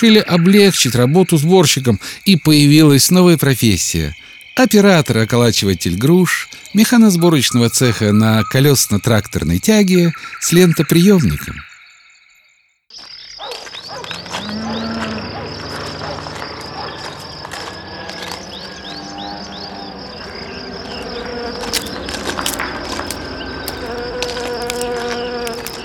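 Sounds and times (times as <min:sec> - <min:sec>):
speech: 0:00.0 - 0:11.7
scattered chirps: 0:00.0 - 0:14.6
insects buzzing in a pear orchard: 0:00.0 - 0:25.8.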